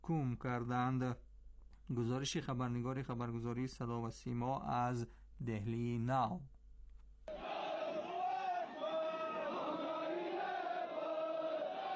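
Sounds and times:
speech: 0:00.0 - 0:01.3, 0:01.9 - 0:06.6
crowd shouting at a protest rally: 0:07.3 - 0:11.9.

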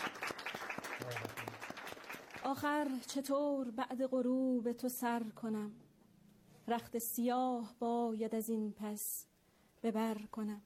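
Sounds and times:
soft scattered applause at a poetry reading: 0:00.0 - 0:02.9
speech: 0:01.0 - 0:01.6, 0:02.4 - 0:05.8, 0:06.7 - 0:10.6.

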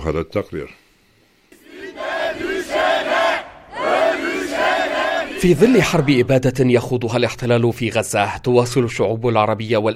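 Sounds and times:
speech: 0:00.0 - 0:00.8, 0:05.4 - 0:09.9
crowd of protesters chanting slogans: 0:01.5 - 0:06.2.

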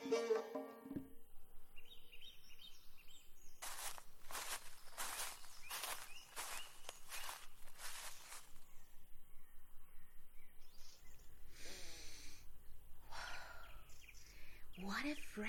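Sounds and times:
speech: 0:00.1 - 0:00.7
faint birds calling: 0:01.6 - 0:15.4
footsteps on leaves or soil: 0:03.6 - 0:08.8.

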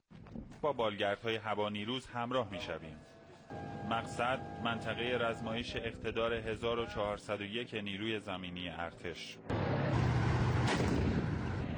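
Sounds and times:
speech: 0:00.6 - 0:09.6
artillery fire during an Iranian army ground forces exercise near Isfahan: 0:09.5 - 0:11.7.

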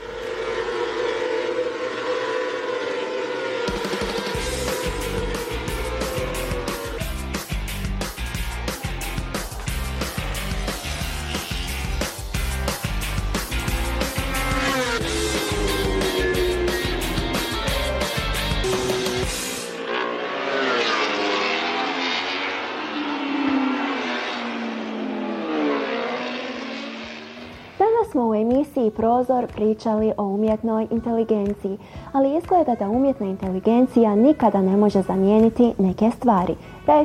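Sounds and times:
motorcycles racing on a track: 0:00.0 - 0:28.6
speech: 0:29.0 - 0:37.0.

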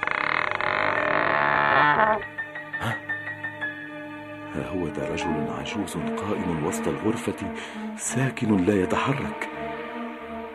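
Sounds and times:
creaking door being opened: 0:00.0 - 0:03.1
speech: 0:04.6 - 0:09.8.

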